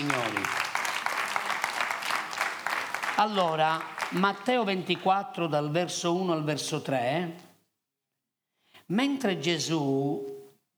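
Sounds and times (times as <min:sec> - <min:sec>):
audience applauding: 0:00.0 - 0:05.0
speech: 0:03.2 - 0:07.5, 0:08.9 - 0:10.3.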